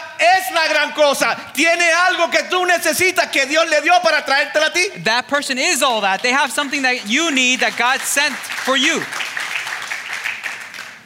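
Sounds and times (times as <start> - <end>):
speech: 0.2 - 9.2
weak scattered audience applause: 6.2 - 11.0.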